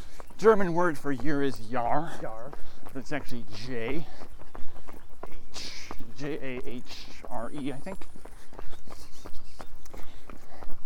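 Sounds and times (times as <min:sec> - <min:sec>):
footsteps of a person running: 0:00.0 - 0:10.8
speech: 0:00.4 - 0:04.3, 0:05.6 - 0:08.3.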